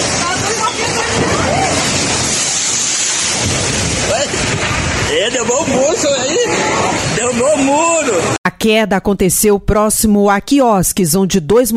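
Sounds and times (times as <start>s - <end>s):
strong wind in a storm: 0.0s - 8.4s
speech: 5.3s - 11.7s.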